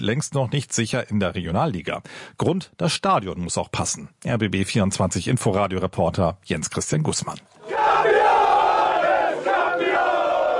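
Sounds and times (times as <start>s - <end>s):
speech: 0.0s - 8.2s
football fans roaring and cheering championship win: 7.6s - 10.5s.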